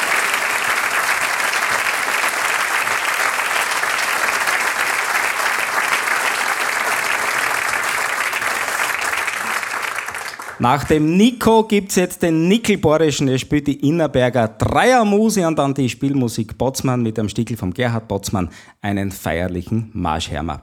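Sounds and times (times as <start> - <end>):
audience applause: 0.0 - 10.7
speech: 10.6 - 20.6.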